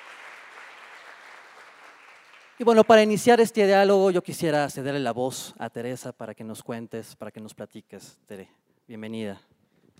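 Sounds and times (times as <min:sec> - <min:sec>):
faint audience applause at a formal dialogue event: 0:00.0 - 0:02.7
speech: 0:02.6 - 0:09.9.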